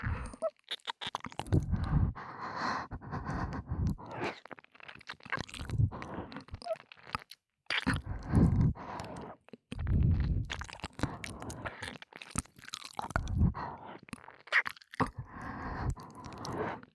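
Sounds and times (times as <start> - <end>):
ASMR breathy sighs: 0.0 - 0.4, 1.5 - 4.4, 5.6 - 6.5, 7.9 - 11.9, 13.2 - 14.1, 15.0 - 16.9
ASMR ear licking sounds: 0.0 - 16.9.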